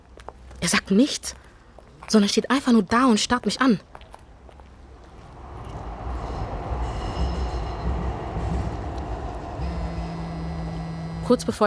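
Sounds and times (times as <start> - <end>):
speech: 0.6 - 1.4, 2.1 - 3.9, 11.3 - 11.6
train rumbling through a station: 4.4 - 11.6
faint high metallic squeals: 5.5 - 11.6.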